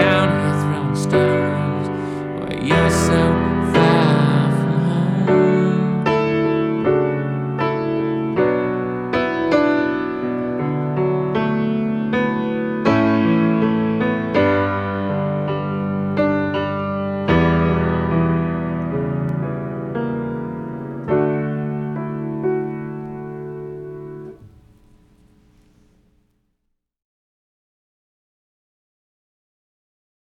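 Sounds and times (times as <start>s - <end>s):
voice: 0.0s - 6.4s
piano: 0.0s - 26.5s.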